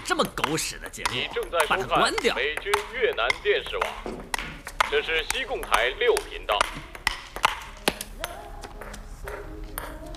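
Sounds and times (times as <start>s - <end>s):
speech: 0.1s - 6.8s
table tennis ball being hit back and forth: 0.2s - 8.1s.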